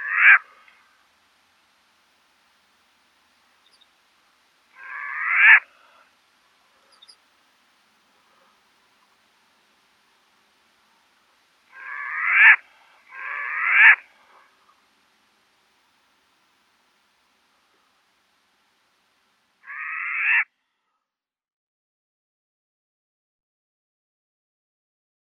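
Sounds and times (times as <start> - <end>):
short-eared owl Asio flammeus calling: 0.0 - 0.8, 4.7 - 6.0, 11.7 - 14.8, 19.6 - 20.5.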